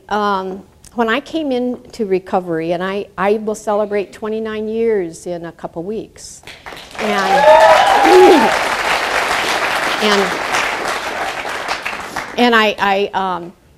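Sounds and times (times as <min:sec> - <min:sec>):
speech: 0:00.1 - 0:08.7, 0:10.0 - 0:10.5, 0:12.4 - 0:13.6
audience applause: 0:06.6 - 0:12.4.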